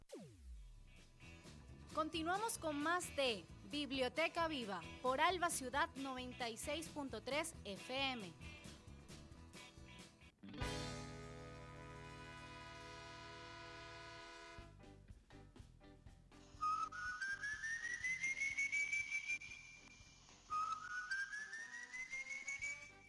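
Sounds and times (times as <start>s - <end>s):
speech: 2.0s - 8.5s
eerie human whistling of the Silbón legend: 16.6s - 23.0s.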